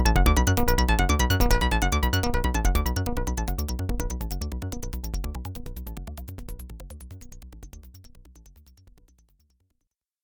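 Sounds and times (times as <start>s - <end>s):
Pro-One and Monotribe synthesizers playing in sync: 0.0s - 7.2s.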